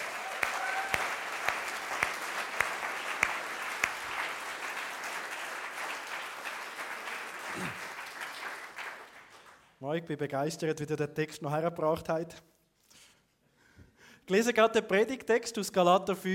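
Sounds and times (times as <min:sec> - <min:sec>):
audience applause for actors: 0:00.0 - 0:09.7
speech: 0:09.8 - 0:12.5, 0:14.3 - 0:16.3.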